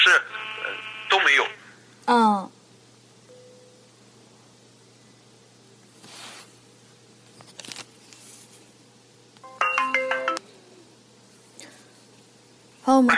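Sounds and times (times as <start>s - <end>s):
speech: 0.1s - 2.6s, 13.0s - 13.1s
incoming phone call ringtone: 9.4s - 10.4s.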